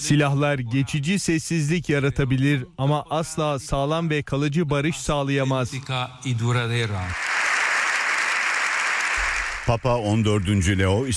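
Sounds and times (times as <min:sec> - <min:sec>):
speech: 0:00.0 - 0:07.3, 0:09.6 - 0:11.1
standing ovation for Pope Leo XIV in the Spanish parliament: 0:06.9 - 0:11.1.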